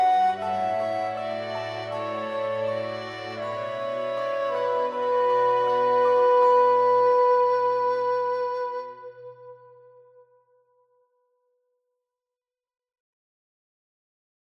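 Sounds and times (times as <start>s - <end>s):
oriental-style emotional fantasy music: 0.0s - 10.3s.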